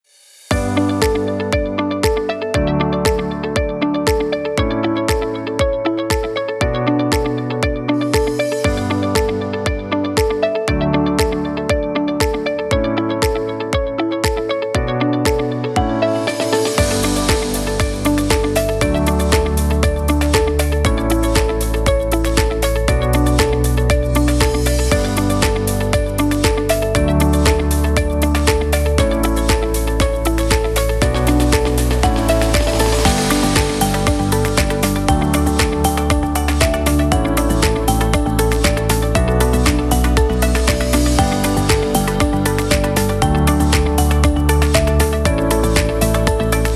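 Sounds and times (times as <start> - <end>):
inspiring upbeat music: 0.5 - 46.7.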